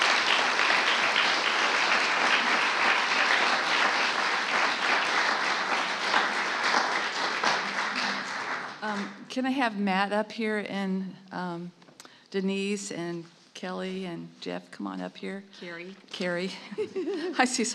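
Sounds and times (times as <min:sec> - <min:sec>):
audience applause welcoming a group of women to the stage: 0:00.0 - 0:09.2
speech: 0:09.4 - 0:17.7
laughter: 0:16.5 - 0:17.7.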